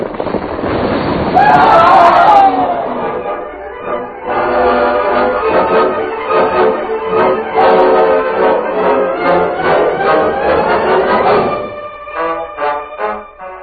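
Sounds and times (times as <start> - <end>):
rumbling crashes: 0.0 - 4.1, 9.2 - 12.2
avalanche of rock and ice crashing roar: 0.0 - 12.8
swelling dramatic music: 1.4 - 13.6.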